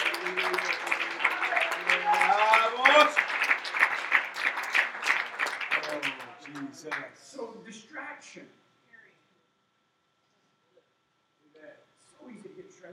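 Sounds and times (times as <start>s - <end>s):
crowd clapping hands: 0.0s - 7.2s
speech: 6.8s - 8.6s.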